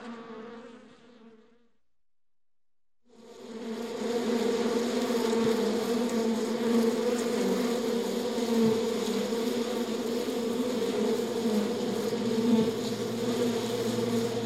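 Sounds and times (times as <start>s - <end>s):
bee humming: 3.2s - 14.4s.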